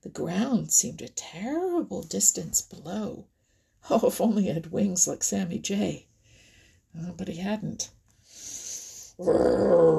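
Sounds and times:
speech: 0.0 - 6.1, 6.9 - 8.0, 9.2 - 9.9
breathy hiss: 8.2 - 9.2
narrator imitating a bear's growl: 9.2 - 9.9.

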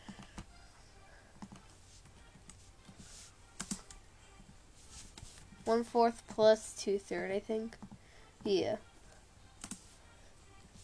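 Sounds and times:
faint computer keyboard typing: 1.4 - 1.7, 3.6 - 4.0, 9.6 - 9.9
speech: 5.7 - 7.8, 8.4 - 8.9.

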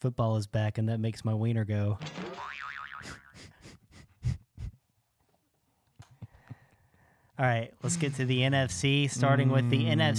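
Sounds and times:
speech: 0.0 - 3.2, 7.4 - 10.1
comedy boing sound effect from a soundboard: 2.0 - 3.3.

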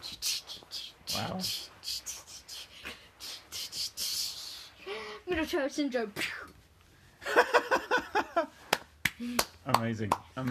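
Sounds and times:
speech: 1.2 - 1.7, 5.3 - 6.4, 7.3 - 8.5, 9.2 - 10.4
laughter: 7.2 - 8.5
hands clapping: 8.6 - 10.4.

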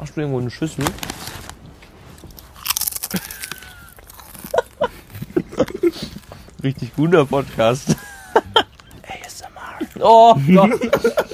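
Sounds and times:
speech: 0.0 - 1.3, 6.6 - 8.0, 10.0 - 11.1
crunchy chips being eaten: 2.2 - 7.0
laughter: 3.1 - 6.2, 7.7 - 9.0, 10.4 - 11.3.

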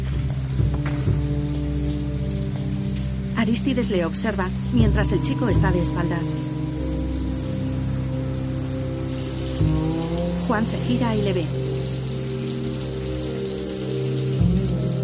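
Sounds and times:
shower water running: 0.0 - 15.0
sustained low musical tones: 0.0 - 15.0
speech: 3.4 - 6.5, 10.5 - 11.6.

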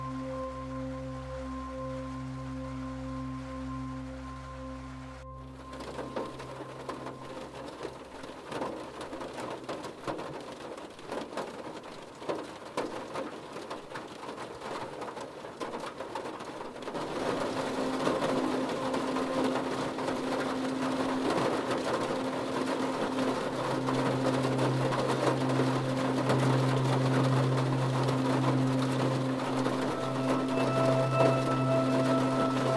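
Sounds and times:
low steady hum: 0.0 - 8.5, 16.8 - 32.7
rain patter: 0.0 - 32.7.

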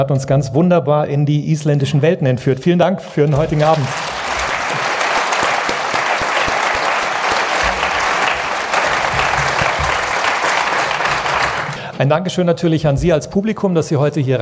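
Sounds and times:
speech: 0.0 - 4.2, 12.0 - 14.4
audience applause: 3.4 - 11.9.

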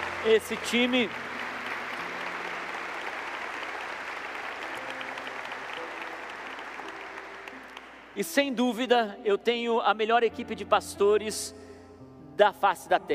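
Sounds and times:
audience applause: 0.0 - 8.2
speech: 0.2 - 1.4, 8.2 - 11.6, 12.4 - 13.1.

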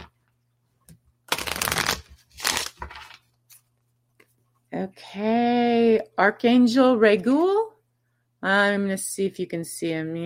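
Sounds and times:
oracle cards being shuffled by hand: 1.3 - 4.3
speech: 4.8 - 7.7, 8.4 - 10.2.

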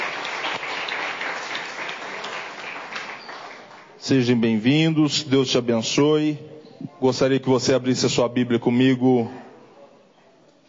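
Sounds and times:
audience applause: 0.0 - 4.0
speech: 4.0 - 9.4.

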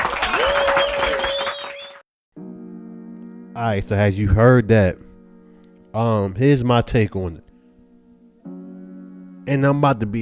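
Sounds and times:
crowd applause: 0.0 - 2.0
sustained high tone: 2.4 - 10.1
speech: 3.6 - 5.1, 6.0 - 7.5, 9.5 - 10.1.

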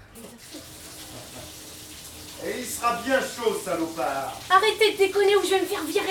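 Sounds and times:
running water filling a bathtub for a hot bath: 0.0 - 6.1
speech: 2.4 - 6.1.

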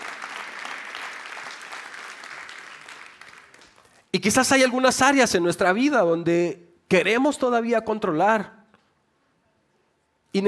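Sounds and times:
audience applauding: 0.0 - 4.1
speech: 4.1 - 8.6.

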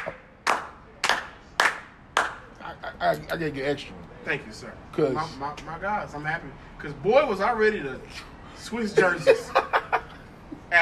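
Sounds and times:
hand claps: 0.0 - 2.5
speech: 3.0 - 9.7
laughter: 8.9 - 10.4.

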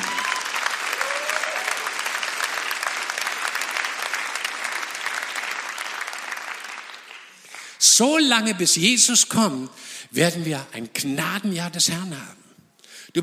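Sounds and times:
audience applause: 0.0 - 7.8
speech: 7.8 - 12.4.

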